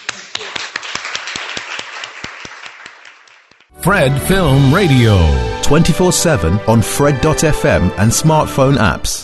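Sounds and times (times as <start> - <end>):
audience applause: 0.0 - 3.7
speech: 3.8 - 9.2.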